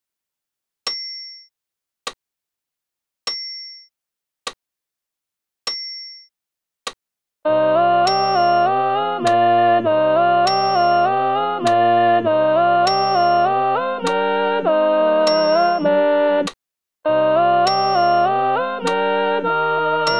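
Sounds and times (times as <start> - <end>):
alto voice with accompaniment: 7.5 - 16.5, 17.1 - 20.1.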